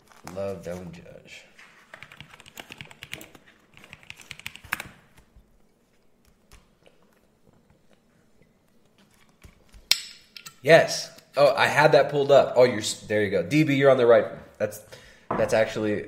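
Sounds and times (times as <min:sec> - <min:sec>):
speech: 0:00.3 - 0:01.5, 0:10.6 - 0:16.0
typing on computer keyboard: 0:01.9 - 0:05.0.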